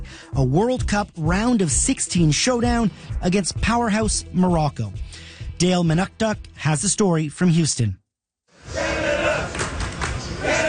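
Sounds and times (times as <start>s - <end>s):
speech: 0.3s - 8.0s
Canada soccer supporters chanting in the streets of downtown Houston: 8.6s - 10.6s.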